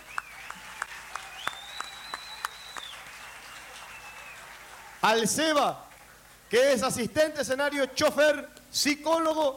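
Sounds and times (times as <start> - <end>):
audience applause: 0.0 - 5.2
speech: 5.0 - 5.8, 6.5 - 9.5.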